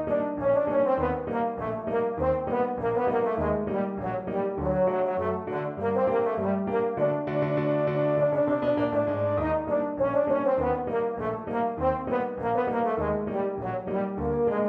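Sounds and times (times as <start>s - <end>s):
euphonium melody: 0.0s - 14.6s.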